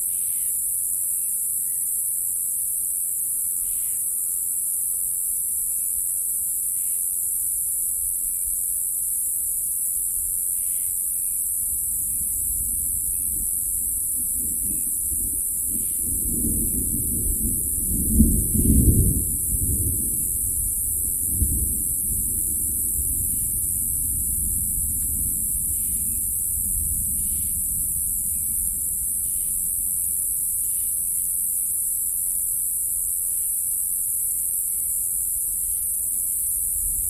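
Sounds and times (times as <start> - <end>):
continuous cicada ratchet: 0.1 - 37.0
distant thunder: 11.8 - 29.6.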